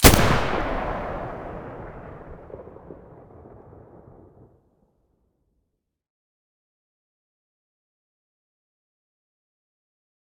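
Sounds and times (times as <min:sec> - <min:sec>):
G36 rifle muzzle gunshots: 0:00.0 - 0:02.9.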